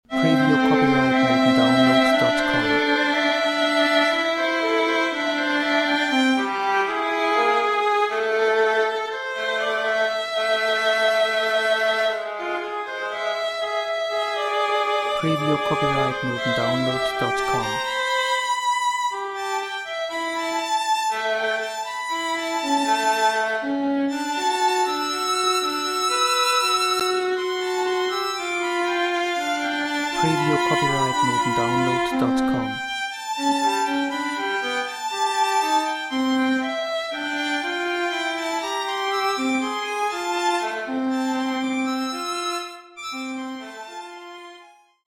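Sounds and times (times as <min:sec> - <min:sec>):
violins playing: 0:00.0 - 0:44.8.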